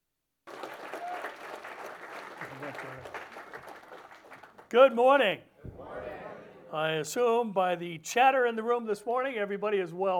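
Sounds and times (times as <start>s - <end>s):
church congregation applause welcoming its pastor: 0.4s - 4.9s
speech: 4.7s - 5.5s, 6.7s - 10.1s.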